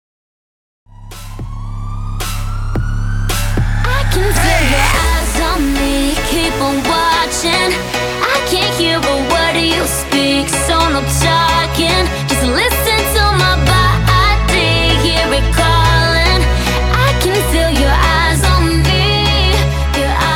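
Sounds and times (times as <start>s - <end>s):
dubstep remix at 110 bpm: 1.1s - 20.2s.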